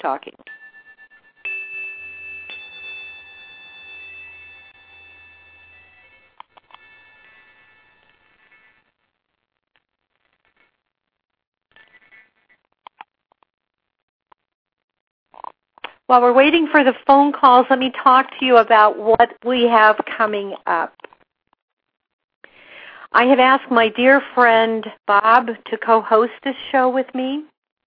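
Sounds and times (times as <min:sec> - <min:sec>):
speech: 0:00.0 - 0:00.5, 0:16.1 - 0:21.0, 0:23.1 - 0:27.5
chimes played on air: 0:00.4 - 0:08.8.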